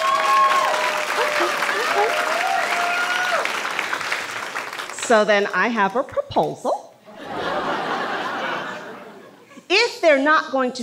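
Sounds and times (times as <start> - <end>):
audience applause: 0.0 - 5.0
laughter: 1.0 - 2.4, 7.1 - 9.6
speech: 5.1 - 6.8, 10.1 - 10.8.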